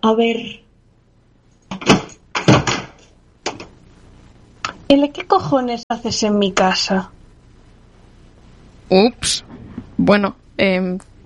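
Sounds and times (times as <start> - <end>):
speech: 0.0 - 0.6, 4.9 - 7.2, 8.9 - 11.1
knocking on a door: 1.7 - 3.7.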